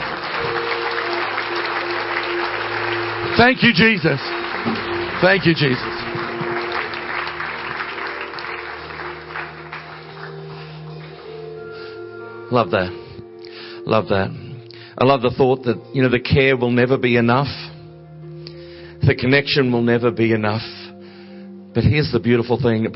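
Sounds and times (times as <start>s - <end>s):
audience clapping: 0.0s - 11.8s
speech: 3.4s - 6.0s, 12.5s - 13.0s, 13.9s - 14.4s, 15.0s - 17.7s, 19.1s - 20.8s, 21.8s - 22.9s.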